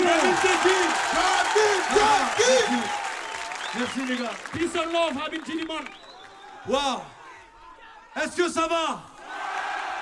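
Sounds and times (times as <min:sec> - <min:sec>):
audience applause: 0:00.0 - 0:06.6
speech: 0:03.8 - 0:06.0, 0:06.6 - 0:07.2, 0:08.2 - 0:09.1.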